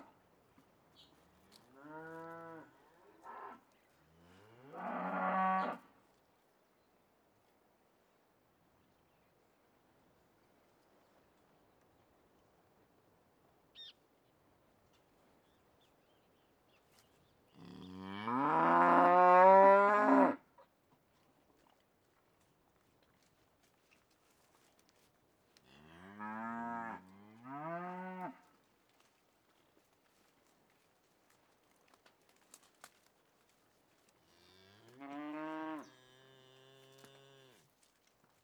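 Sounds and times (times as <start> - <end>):
cattle in countryside in Uruguay by day: 1.5 - 5.9, 17.6 - 20.4, 23.1 - 28.7, 31.7 - 38.4.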